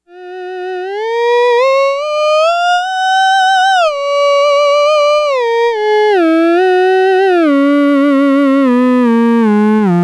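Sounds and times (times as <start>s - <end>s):
theremin: 0.1s - 10.0s.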